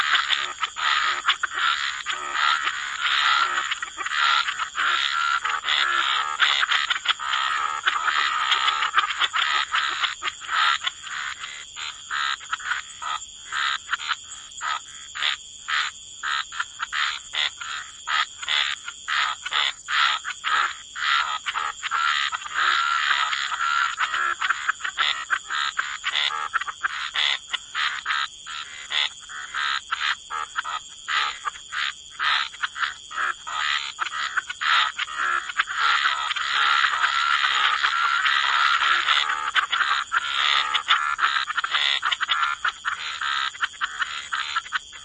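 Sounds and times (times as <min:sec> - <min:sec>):
frog chorus croaking: 0:00.0 - 0:45.0.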